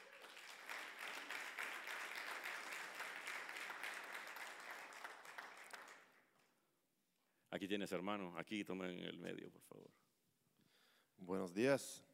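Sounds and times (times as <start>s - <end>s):
audience applause: 0.0s - 6.1s
speech: 7.5s - 10.1s, 11.2s - 12.1s.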